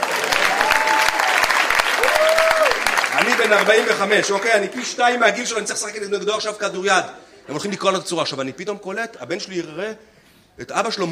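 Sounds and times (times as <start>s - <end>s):
audience applause: 0.0s - 5.3s
speech: 3.5s - 11.1s.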